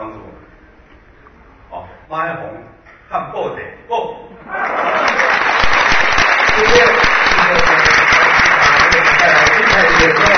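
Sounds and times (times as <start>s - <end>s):
speech: 2.1s - 5.0s
crowd applause: 4.5s - 10.3s.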